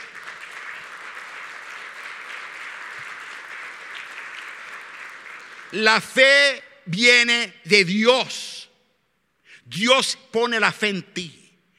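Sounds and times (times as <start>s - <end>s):
audience applause: 0.0s - 5.9s
speech: 5.7s - 8.6s, 9.7s - 11.4s.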